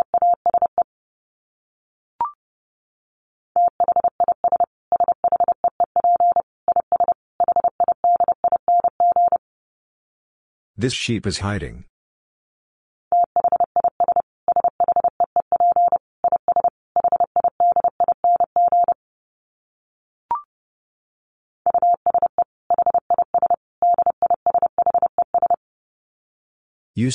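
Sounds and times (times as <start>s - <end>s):
Morse code tones at 30 wpm: 0.0s - 0.8s, 3.6s - 9.4s, 13.2s - 19.0s, 21.7s - 25.6s
speech: 10.8s - 11.9s.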